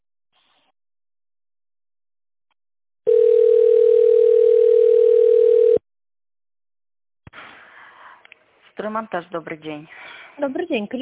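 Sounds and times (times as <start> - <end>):
telephone ringback tone: 3.1 - 5.8
speech: 8.8 - 10.9.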